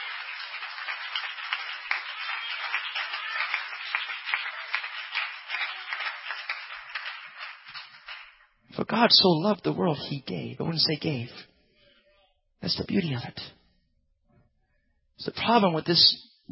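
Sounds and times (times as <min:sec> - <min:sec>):
audience clapping hands: 0:00.0 - 0:08.5
speech: 0:08.8 - 0:11.5, 0:12.6 - 0:13.6, 0:15.2 - 0:16.4.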